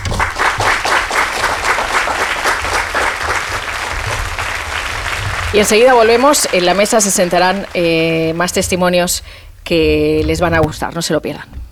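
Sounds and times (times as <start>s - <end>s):
audience applause: 0.0s - 8.9s
speech: 5.5s - 11.6s.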